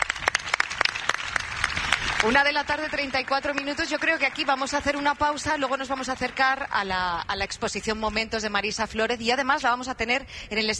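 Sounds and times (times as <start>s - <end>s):
audience applause: 0.0s - 6.6s
speech: 2.2s - 10.7s.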